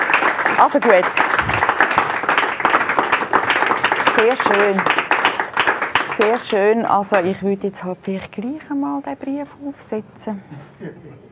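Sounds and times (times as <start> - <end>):
applause: 0.0 - 7.4
speech: 0.6 - 1.6, 4.2 - 5.0, 6.2 - 11.3.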